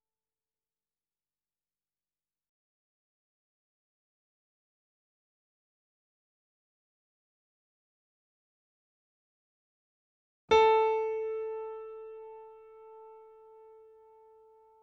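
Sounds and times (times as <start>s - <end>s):
grand piano and sample piano C4 E4 A4 chord: 10.5s - 14.8s.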